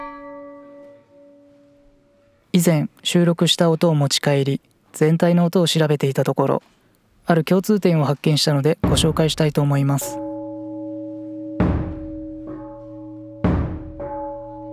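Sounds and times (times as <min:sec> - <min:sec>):
speech: 0:02.5 - 0:10.2
temple bell at the Daihannya prayer ceremony at Yamadera: 0:08.9 - 0:14.7.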